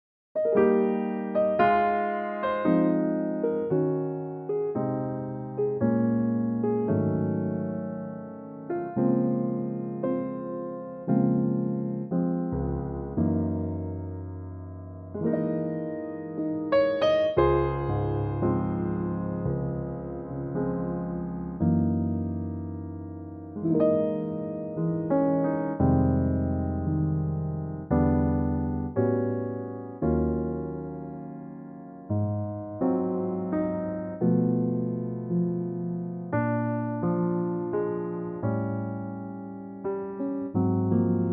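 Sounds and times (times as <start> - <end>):
piano in D-flat: 0.3 - 41.3.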